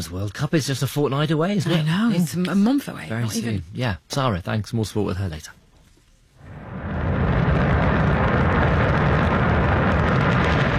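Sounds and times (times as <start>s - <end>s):
speech: 0.0s - 5.6s
China's Shenzhou 23 rocket launch roar at Jinquan Launch Center: 6.4s - 10.7s.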